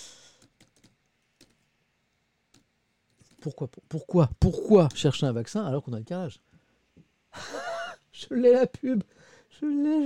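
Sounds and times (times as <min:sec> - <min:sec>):
typing on a computer keyboard: 0:00.4 - 0:01.6
speech: 0:03.4 - 0:06.5, 0:08.3 - 0:10.0.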